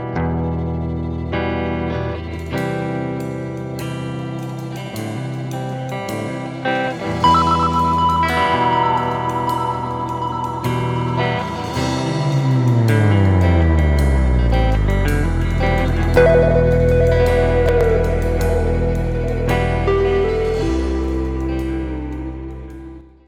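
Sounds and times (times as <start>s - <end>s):
creepy funk music: 0.2s - 23.2s.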